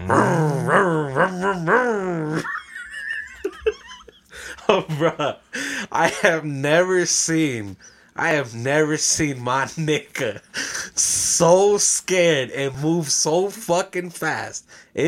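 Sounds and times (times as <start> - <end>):
voice imitating a revving chainsaw: 0.0 - 2.4
speech: 0.8 - 2.6, 4.7 - 5.4, 6.0 - 15.0
laughter: 1.2 - 6.5.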